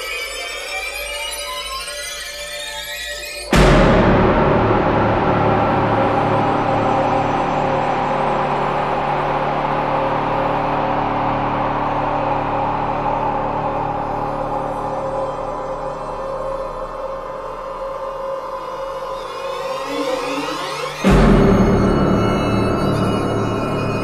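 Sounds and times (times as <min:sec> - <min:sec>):
horror music: 0:00.0 - 0:24.0.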